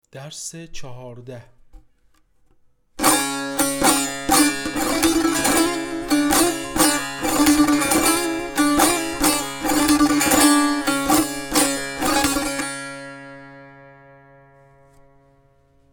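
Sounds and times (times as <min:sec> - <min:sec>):
tanbur practice: 0:03.0 - 0:15.6.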